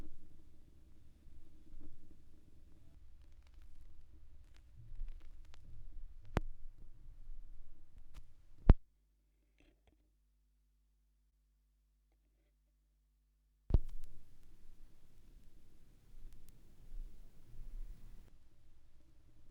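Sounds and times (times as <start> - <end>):
vinyl record crackle: 0.0 - 8.8, 13.7 - 18.3.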